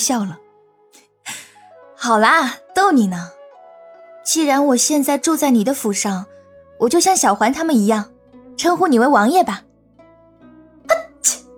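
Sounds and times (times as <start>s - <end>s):
speech: 0.0s - 1.0s, 2.0s - 3.4s, 4.2s - 9.7s
person sneezing: 10.9s - 11.5s.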